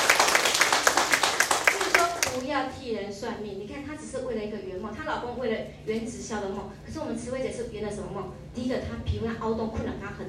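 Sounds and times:
audience applause: 0.0s - 2.4s
speech: 2.6s - 10.2s.

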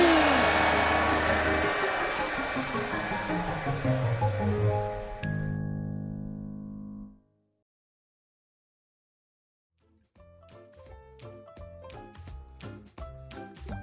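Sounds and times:
hair dryer blowing: 0.0s - 5.2s.

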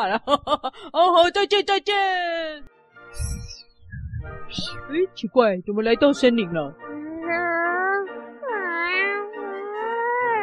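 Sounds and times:
speech: 0.0s - 3.4s, 4.2s - 7.4s
cat meowing: 7.0s - 10.4s.

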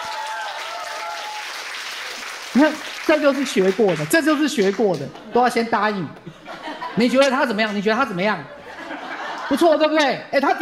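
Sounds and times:
audience applause: 0.0s - 5.3s
speech: 2.6s - 6.4s, 7.0s - 8.6s, 9.5s - 10.6s
laughter: 5.1s - 10.0s.

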